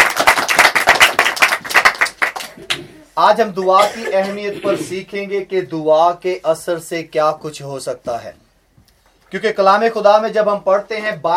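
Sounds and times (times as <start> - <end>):
loud dense clapping from many hands: 0.0 - 2.9
speech: 3.2 - 8.4, 9.3 - 11.3.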